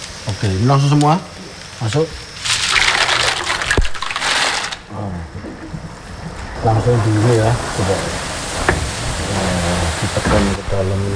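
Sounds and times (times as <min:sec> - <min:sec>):
kerupuk crackers frying in hot oil: 0:00.0 - 0:11.1
speech: 0:00.3 - 0:02.2, 0:06.6 - 0:08.2, 0:09.4 - 0:11.1
sharp clatter: 0:02.4 - 0:10.6.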